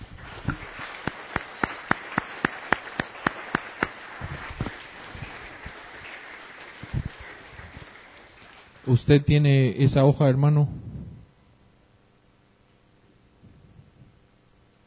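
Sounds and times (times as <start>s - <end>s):
audience applause: 0.0s - 9.0s
speech: 8.9s - 10.8s.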